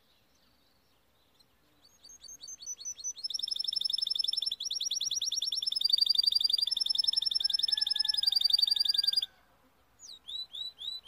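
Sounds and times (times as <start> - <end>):
Timbrado canary singing rising chirps: 1.8 - 9.3, 10.0 - 11.0.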